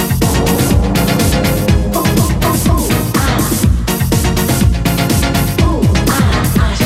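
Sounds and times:
80s style beat at 123 bpm: 0.2s - 6.7s.

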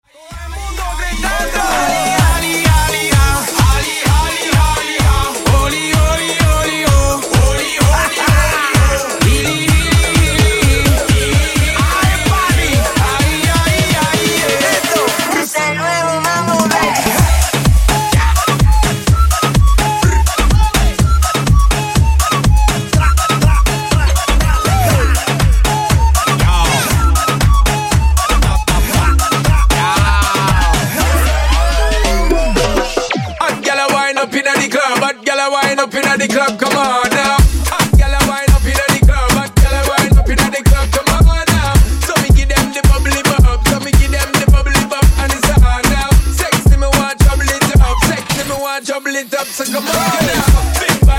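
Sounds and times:
mambo music: 0.1s - 51.1s.

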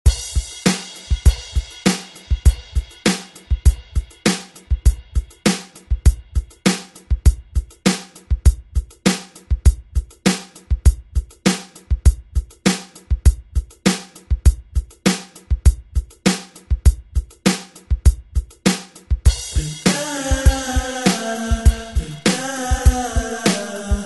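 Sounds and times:
90s drum beat: 0.0s - 24.0s.

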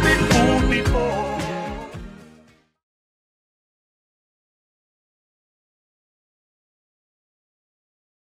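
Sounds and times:
1970s style music: 0.0s - 2.8s.

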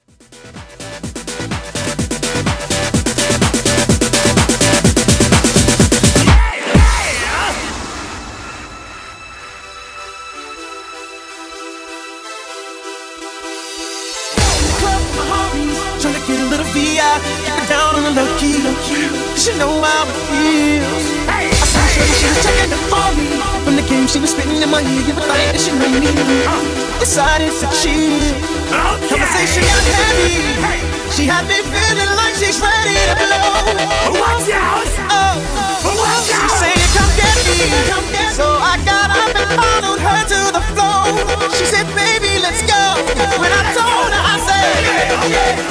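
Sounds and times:
epic mashup music: 0.0s - 45.6s.

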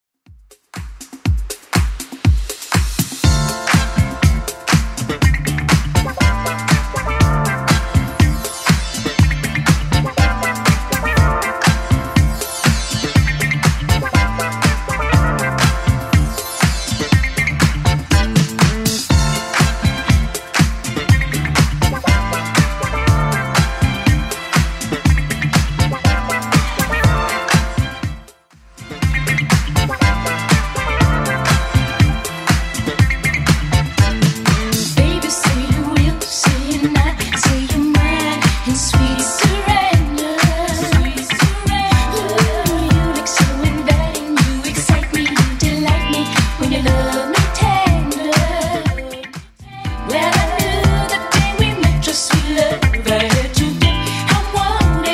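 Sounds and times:
1980s club music at 121 BPM: 0.4s - 55.1s.

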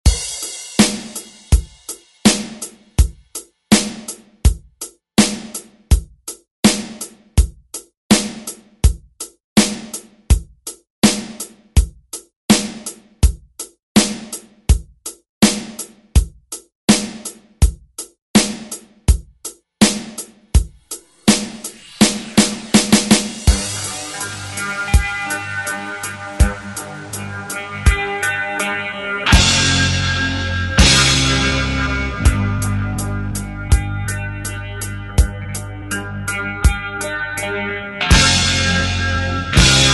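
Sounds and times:
1970s drum beat: 0.0s - 36.9s, 38.0s - 38.8s, 39.5s - 39.9s.

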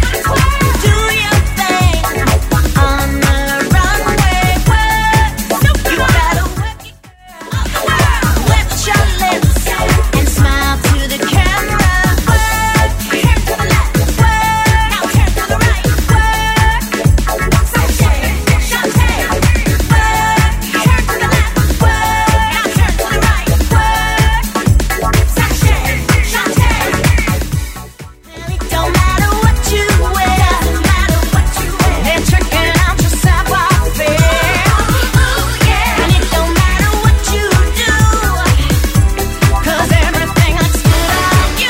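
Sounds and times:
eighties style music track at 126 bpm: 0.0s - 41.6s.

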